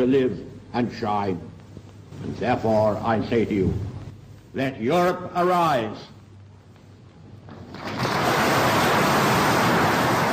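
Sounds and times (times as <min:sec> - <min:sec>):
speech: 0:00.0 - 0:01.5, 0:02.2 - 0:03.9, 0:04.5 - 0:06.2
hearty applause from a crowd: 0:07.7 - 0:10.3.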